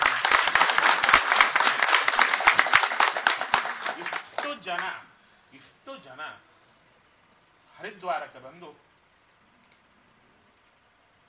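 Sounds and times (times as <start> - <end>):
audience applause at a religious gathering: 0.0 - 4.9
speech: 4.6 - 6.5, 7.8 - 8.9.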